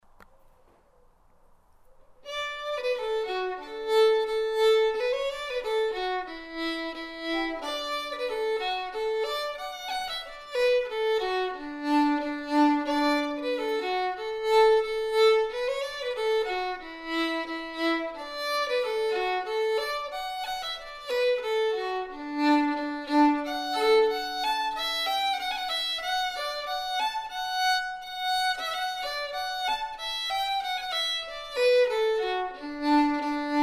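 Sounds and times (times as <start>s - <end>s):
fiddle playing polka: 2.3s - 33.6s.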